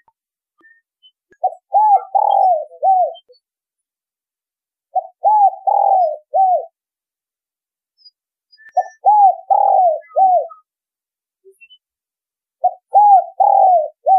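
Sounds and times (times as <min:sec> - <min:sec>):
spotted dove cooing: 0:01.4 - 0:03.3, 0:04.9 - 0:06.8, 0:08.8 - 0:10.6, 0:12.6 - 0:14.1.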